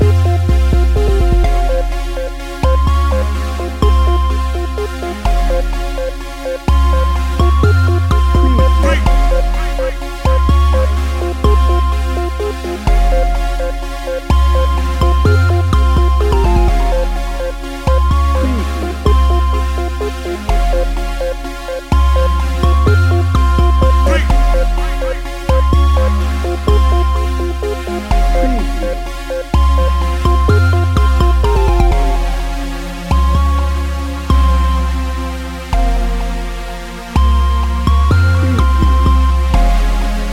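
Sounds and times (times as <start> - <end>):
smooth chill music without drums: 0.0 - 40.3.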